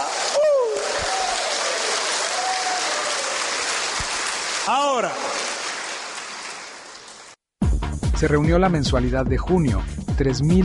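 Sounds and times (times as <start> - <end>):
audience applauding: 0.0 - 7.4
speech: 4.7 - 5.4, 8.2 - 10.6.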